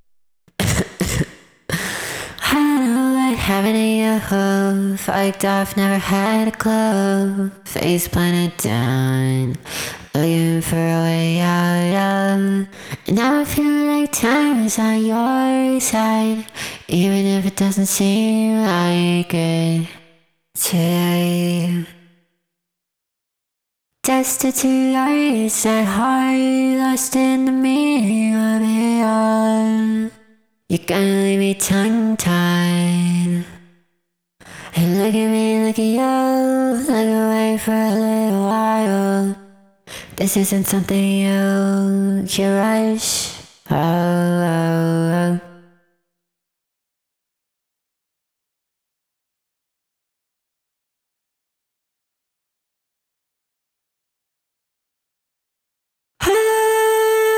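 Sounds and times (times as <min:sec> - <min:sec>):
vocals: 0:00.5 - 0:22.2, 0:24.0 - 0:45.9, 0:56.2 - 0:57.3.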